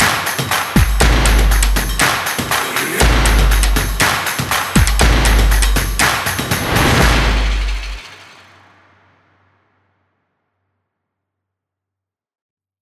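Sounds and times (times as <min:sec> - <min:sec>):
energetic background stomp percussion: 0:00.0 - 0:08.7.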